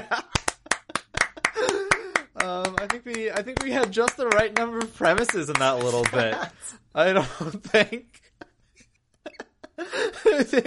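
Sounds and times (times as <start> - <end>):
laughter: 0.0 - 4.6, 5.3 - 10.6
applause: 0.3 - 6.5
speech: 2.4 - 8.3, 10.3 - 10.6.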